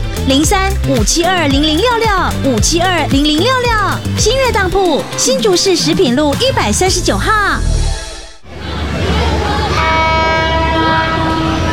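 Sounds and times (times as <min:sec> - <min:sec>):
speech: 0:00.2 - 0:07.8
train horn blast: 0:09.7 - 0:11.7.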